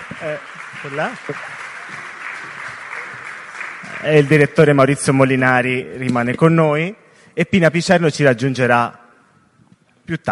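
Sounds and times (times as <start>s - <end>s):
audience applause: 0.0s - 4.8s
speech: 0.2s - 2.2s, 4.0s - 9.0s, 10.1s - 10.3s.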